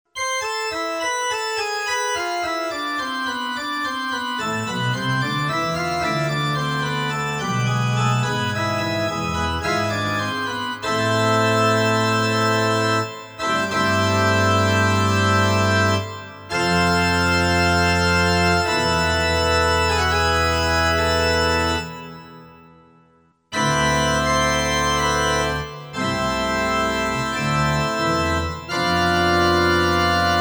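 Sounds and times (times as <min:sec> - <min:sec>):
pipe organ: 0:00.2 - 0:22.8, 0:23.5 - 0:30.3.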